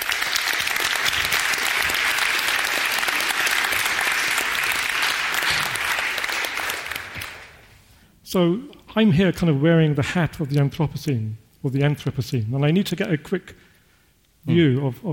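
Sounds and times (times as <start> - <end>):
audience applauding a geological scientist welcomed onto the stage: 0.0 - 7.7
speech: 8.3 - 13.7, 14.4 - 15.1.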